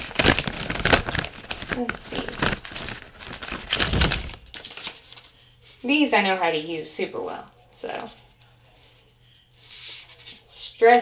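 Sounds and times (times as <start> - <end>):
plastic packaging of an eye mask crinkling: 0.0 - 5.3
speech: 1.8 - 2.2, 5.8 - 8.2, 10.8 - 10.9.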